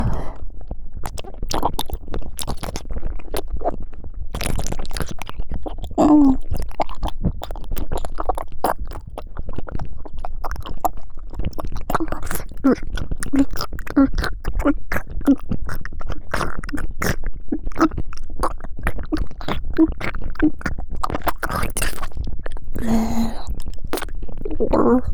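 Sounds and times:
deep ear licking in the right ear: 1.1s - 3.7s, 4.4s - 25.1s.

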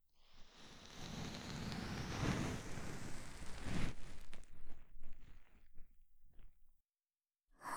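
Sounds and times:
ear cleaning in the right ear: 0.5s - 4.6s.

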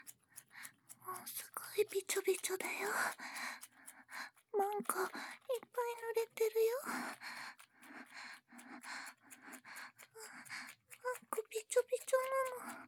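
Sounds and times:
erotic voice: 1.2s - 3.0s, 4.6s - 6.9s, 11.1s - 12.7s.

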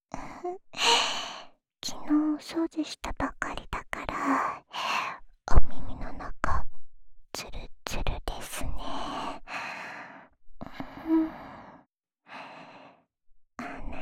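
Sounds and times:
woman whispering ASMR: 0.2s - 6.7s, 7.4s - 9.5s, 13.6s - 14.0s.

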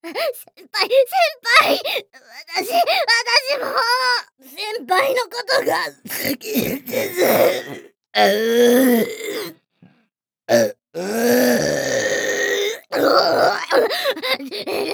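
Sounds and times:
speech: 0.1s - 9.6s, 10.5s - 12.3s, 12.9s - 14.9s
loud burp: 6.6s - 9.6s, 10.5s - 13.8s.

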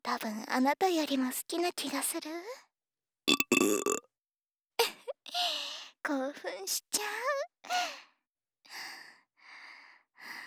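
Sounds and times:
speech: 0.1s - 2.7s, 3.6s - 4.0s, 5.3s - 8.1s
burp: 3.3s - 4.0s.

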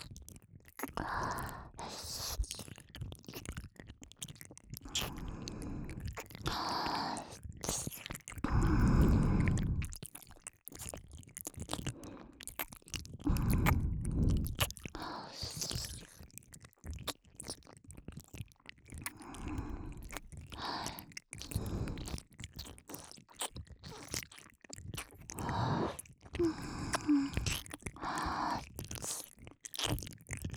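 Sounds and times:
shallow ASMR ear licking loop in left ear for relaxation: 4.9s - 16.2s, 18.9s - 24.3s, 24.9s - 30.5s.

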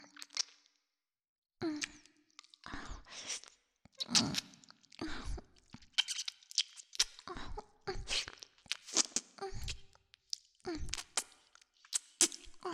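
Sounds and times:
ear licking: 0.1s - 0.5s, 3.2s - 7.3s, 8.1s - 12.6s.

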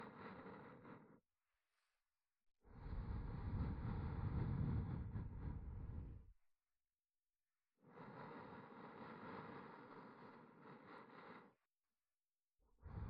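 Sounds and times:
ASMR breathy sighs: 0.0s - 2.0s, 2.7s - 6.4s, 7.8s - 11.7s, 12.8s - 13.0s.

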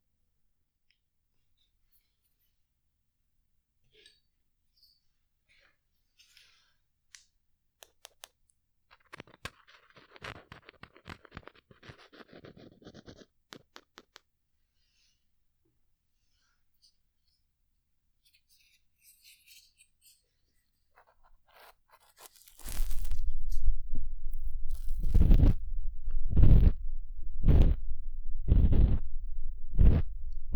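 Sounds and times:
ear cleaning sounds without voice: 22.2s - 30.5s.

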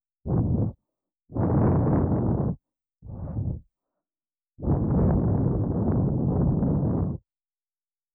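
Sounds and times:
ASMR ear cleaning after a bath, left ear: 0.3s - 3.6s, 4.6s - 7.2s.

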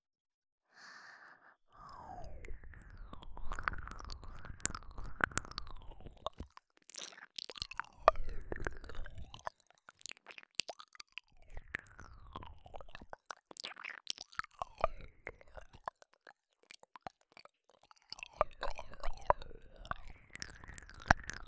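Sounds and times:
ear licking: 1.8s - 11.3s, 12.4s - 21.4s.

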